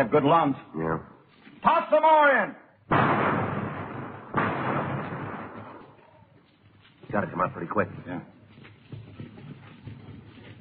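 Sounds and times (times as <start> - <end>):
speech: 0.0 - 3.2, 7.1 - 8.3
heavy machine gun fire in a shootout around a house: 2.9 - 5.9.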